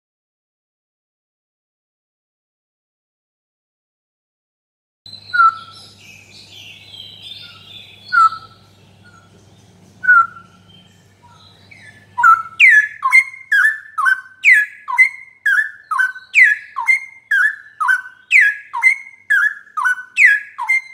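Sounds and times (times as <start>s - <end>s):
bird singing whistled notes: 5.1s - 20.9s.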